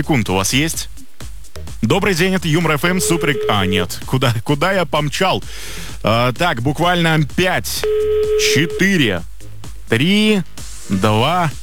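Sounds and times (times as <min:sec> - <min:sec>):
speech: 0:00.0 - 0:01.0, 0:01.8 - 0:09.3, 0:09.9 - 0:11.6
telephone ringback tone while calling a listener: 0:02.8 - 0:03.9, 0:07.8 - 0:09.0.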